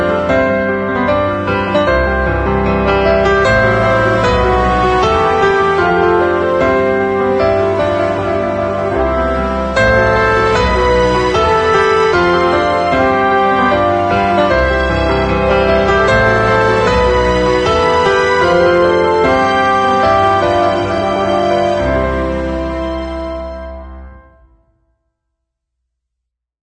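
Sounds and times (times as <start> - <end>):
wedding march piano piece: 0.0 - 24.9.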